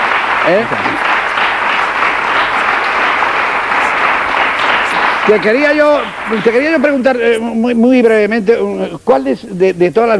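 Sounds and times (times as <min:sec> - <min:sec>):
big audience ovation from a large crowd: 0:00.0 - 0:07.6
speech: 0:00.5 - 0:01.1, 0:05.3 - 0:10.1.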